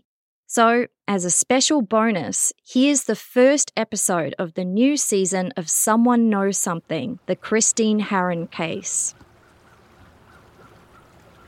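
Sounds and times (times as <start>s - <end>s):
speech: 0.5s - 9.3s
river flowing through a southwestern Ontario town on a clear spring evening: 7.3s - 11.4s.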